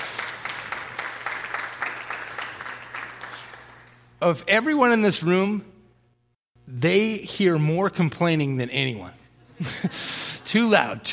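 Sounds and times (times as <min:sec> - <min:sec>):
round of applause: 0:00.0 - 0:04.2
speech: 0:04.2 - 0:05.7, 0:06.7 - 0:11.1.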